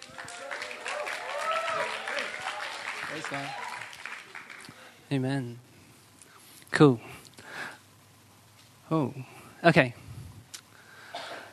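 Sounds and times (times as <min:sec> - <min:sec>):
audience applauding to welcome a speaker: 0:00.0 - 0:05.0
speech: 0:03.1 - 0:03.6, 0:05.1 - 0:05.7, 0:06.7 - 0:07.2, 0:08.9 - 0:10.0.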